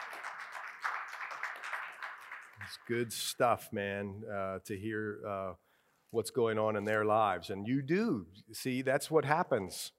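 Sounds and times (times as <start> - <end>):
audience clapping: 0.0 - 3.3
speech: 2.7 - 9.9.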